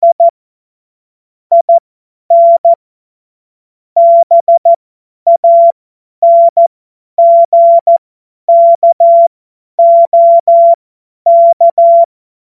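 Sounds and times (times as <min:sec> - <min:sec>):
CW Morse code beeps: 0:00.0 - 0:00.3, 0:01.5 - 0:02.8, 0:04.0 - 0:12.1.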